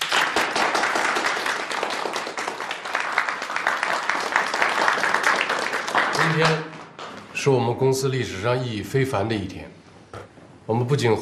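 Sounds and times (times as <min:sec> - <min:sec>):
audience applause: 0:00.0 - 0:06.9
speech: 0:06.3 - 0:06.7, 0:07.4 - 0:09.8, 0:10.7 - 0:11.2.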